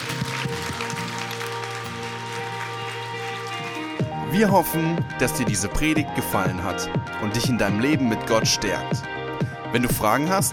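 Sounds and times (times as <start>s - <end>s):
audience applause: 0.0s - 4.0s
sustained keyboard chords: 0.0s - 9.5s
speech: 4.3s - 10.5s.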